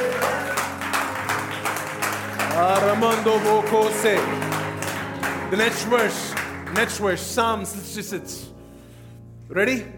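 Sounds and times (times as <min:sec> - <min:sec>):
audience clapping: 0:00.0 - 0:07.5
speech: 0:02.6 - 0:04.4, 0:05.5 - 0:08.6, 0:09.5 - 0:09.9.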